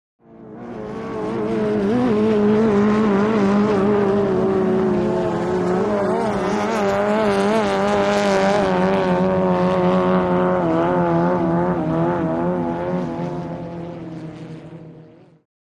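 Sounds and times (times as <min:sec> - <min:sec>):
inboard and outboard motorboats passing by: 0:00.2 - 0:15.4.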